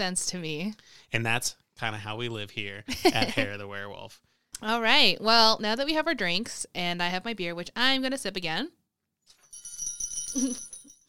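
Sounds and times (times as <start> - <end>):
speech: 0.0 - 8.8, 10.3 - 10.7
small bell ringing: 9.3 - 11.0.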